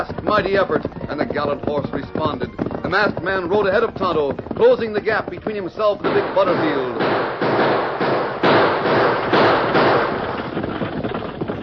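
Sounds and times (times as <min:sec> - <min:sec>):
speech: 0:00.0 - 0:07.4
gunshots: 0:06.0 - 0:11.6.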